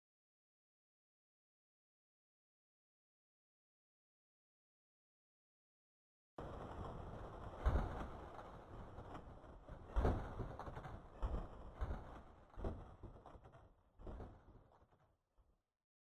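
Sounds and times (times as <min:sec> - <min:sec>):
thunder: 0:06.4 - 0:14.8.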